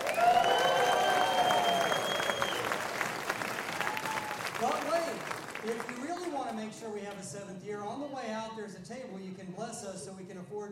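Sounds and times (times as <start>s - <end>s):
audience round of applause: 0.0s - 6.6s
speech: 7.1s - 10.7s.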